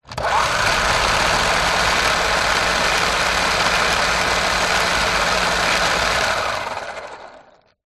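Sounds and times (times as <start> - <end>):
Hot Wheels car track booster motor running: 0.0 - 7.7.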